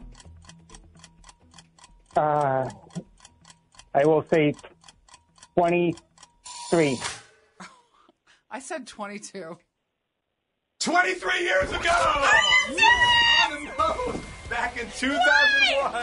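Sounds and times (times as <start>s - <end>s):
game timer ticking: 0.0s - 7.2s
speech: 2.2s - 3.1s, 4.0s - 4.7s, 5.6s - 6.1s, 6.7s - 7.1s, 8.6s - 9.7s, 10.8s - 16.0s.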